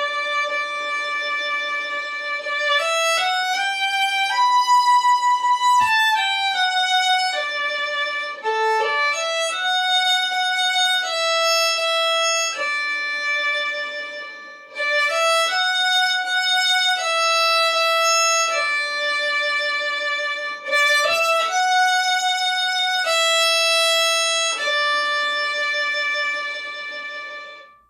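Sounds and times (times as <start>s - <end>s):
beginner violin solo: 0.0s - 27.8s.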